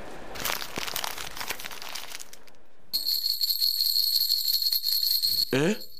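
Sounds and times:
crinkly package wrapping being torn open: 0:00.4 - 0:02.6
bright steady high-pitched ringing tone: 0:03.0 - 0:05.9.

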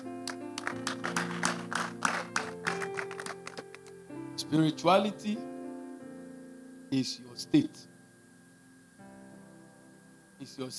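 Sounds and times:
audience clapping for a speaker: 0:00.0 - 0:03.9
sustained organ or keyboard chords: 0:00.0 - 0:10.7
speech: 0:04.5 - 0:05.5, 0:06.9 - 0:07.9, 0:10.4 - 0:10.7.

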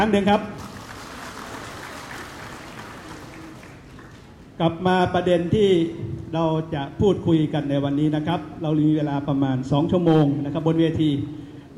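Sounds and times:
speech: 0:00.0 - 0:00.7, 0:04.6 - 0:11.7
crowd applauding: 0:00.6 - 0:04.5.

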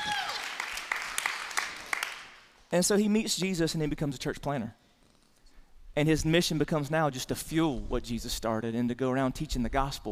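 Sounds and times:
audience clapping in a reverberant room: 0:00.0 - 0:02.6
speech: 0:02.7 - 0:04.8, 0:06.0 - 0:10.1.

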